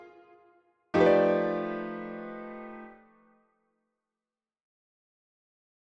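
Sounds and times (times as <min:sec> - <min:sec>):
blues piece in F: 0:01.0 - 0:03.0.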